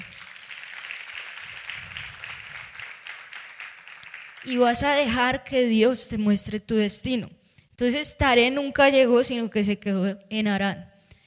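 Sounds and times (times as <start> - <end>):
audience applause: 0.0 - 4.6
speech: 4.4 - 10.9.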